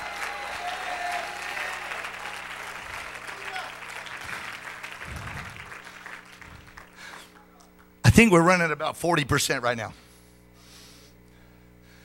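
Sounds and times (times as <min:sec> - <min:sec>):
audience clapping and cheering: 0:00.0 - 0:07.9
speech: 0:08.2 - 0:10.0.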